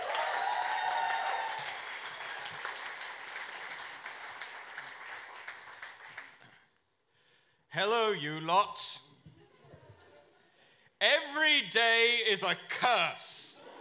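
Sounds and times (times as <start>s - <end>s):
audience applauding a comedian: 0.0s - 6.6s
speech: 7.8s - 9.0s, 11.0s - 13.4s.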